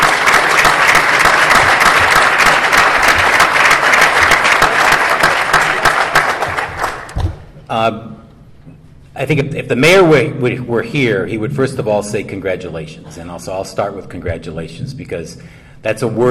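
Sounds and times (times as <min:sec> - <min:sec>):
audience round of applause: 0:00.0 - 0:07.2
speech: 0:07.7 - 0:08.2, 0:09.2 - 0:16.2.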